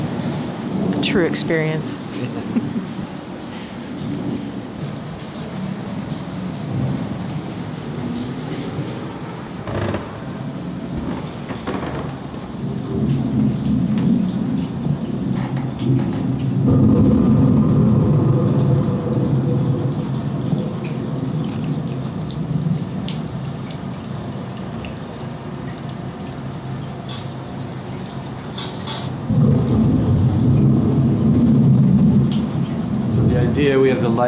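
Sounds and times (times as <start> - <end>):
simulated rainstorm: 0.0 - 34.2
speech: 1.0 - 2.8
rolling thunder: 2.5 - 22.8, 29.2 - 34.2.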